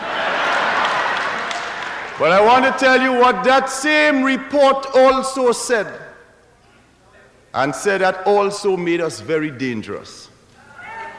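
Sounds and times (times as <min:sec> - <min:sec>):
audience applause: 0:00.0 - 0:02.6
speech: 0:02.2 - 0:06.0, 0:07.6 - 0:10.3.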